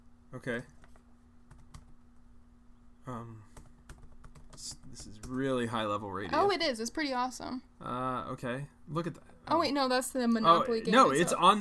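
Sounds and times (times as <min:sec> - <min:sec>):
speech: 0:00.3 - 0:00.8, 0:03.1 - 0:03.6, 0:04.6 - 0:11.5
typing on a computer keyboard: 0:00.8 - 0:01.9, 0:03.5 - 0:05.5.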